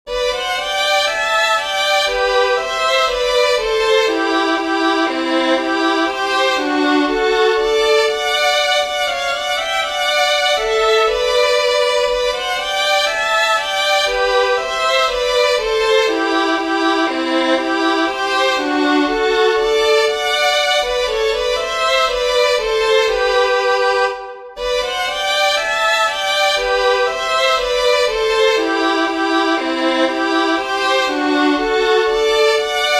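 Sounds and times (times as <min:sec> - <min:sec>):
fiddlers playing a waltz with harmony: 0:00.1 - 0:32.9.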